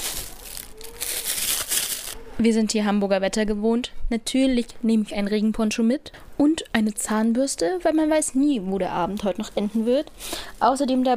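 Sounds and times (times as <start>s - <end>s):
bags and fabric rustling while packing a suitcase or bag: 0.0s - 2.2s
speech: 2.4s - 11.1s.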